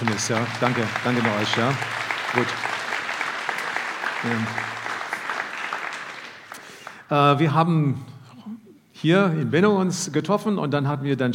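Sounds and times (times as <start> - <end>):
speech: 0.0 - 2.7, 4.2 - 4.8, 7.1 - 8.1, 9.0 - 11.3
group applauding: 0.0 - 7.1.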